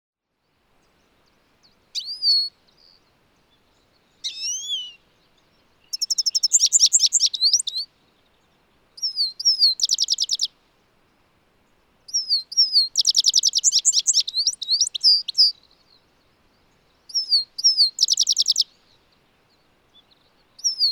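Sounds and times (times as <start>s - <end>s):
European goldfinch Carduelis carduelis twittering and buzzy trills: 4.2s - 7.9s, 9.0s - 10.5s, 12.1s - 15.6s, 17.1s - 18.8s, 19.9s - 20.9s.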